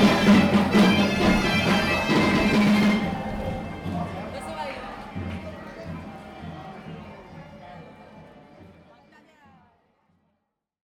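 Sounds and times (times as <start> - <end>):
bagpipes in Santiago: 0.0 - 4.0.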